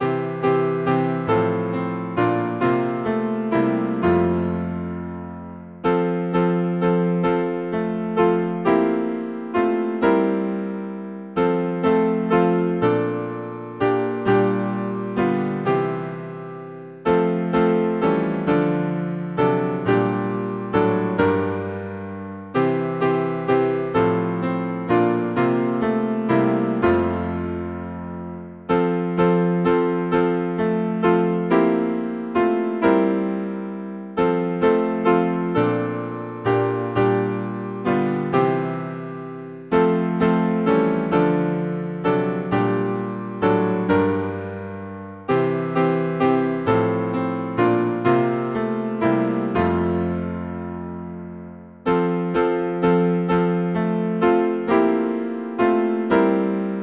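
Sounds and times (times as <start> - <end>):
hymn on piano: 0.0 - 56.8.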